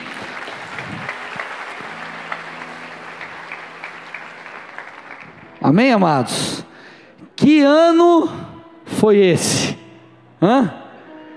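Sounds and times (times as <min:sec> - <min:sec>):
audience applauding: 0:00.0 - 0:05.8
speech: 0:05.7 - 0:06.7, 0:07.4 - 0:08.4, 0:09.0 - 0:09.8, 0:10.4 - 0:10.8.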